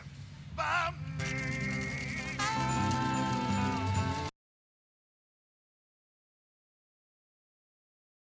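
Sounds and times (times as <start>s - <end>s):
musical harmonies: 0.6s - 4.3s.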